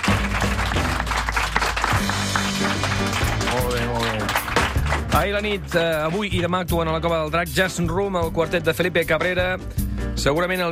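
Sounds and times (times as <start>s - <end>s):
audience applauding musicians at a jazz club: 0.0s - 5.5s
speech: 5.2s - 10.6s.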